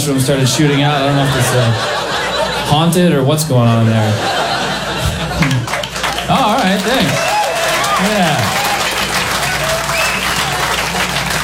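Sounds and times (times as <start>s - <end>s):
laughter: 0.0s - 11.4s
speech: 0.1s - 4.4s, 5.4s - 7.3s, 8.0s - 8.7s
crowd clapping: 5.2s - 11.4s.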